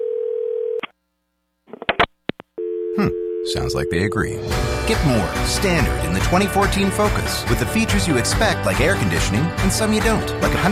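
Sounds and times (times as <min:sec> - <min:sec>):
telephone dial tone: 0:00.0 - 0:00.8, 0:02.6 - 0:03.5
speech: 0:03.0 - 0:10.7.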